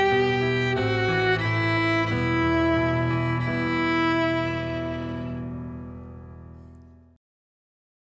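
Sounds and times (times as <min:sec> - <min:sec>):
violin: 0:00.0 - 0:06.2.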